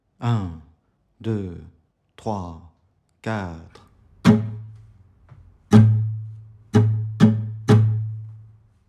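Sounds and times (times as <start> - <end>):
musical exercise: 3.8 - 8.8.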